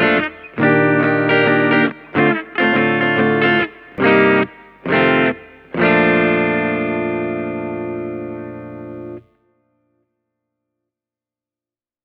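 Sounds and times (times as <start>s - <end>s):
Tokai Love Rock LC 107 electric guitar with clean tone: 0.0s - 9.6s.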